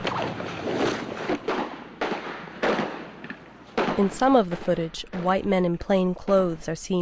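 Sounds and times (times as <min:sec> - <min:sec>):
gunshots from long rifles in a street shooting: 0:01.2 - 0:05.5
speech: 0:04.0 - 0:07.0.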